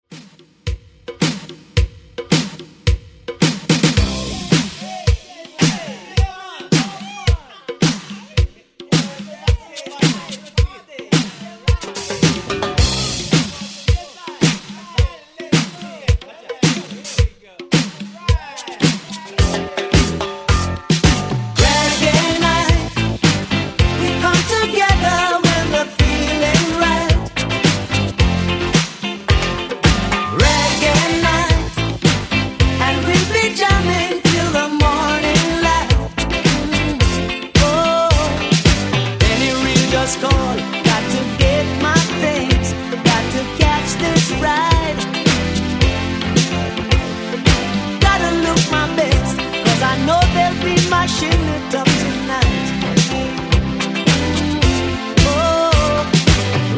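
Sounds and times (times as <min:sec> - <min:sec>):
reggae intro and outro music: 0:00.0 - 0:56.7
laughter: 0:04.2 - 0:19.7.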